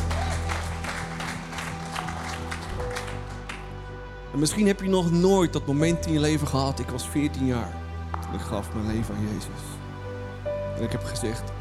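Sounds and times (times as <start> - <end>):
audience applause: 0.0 - 3.8
speech: 4.4 - 9.7, 10.8 - 11.5.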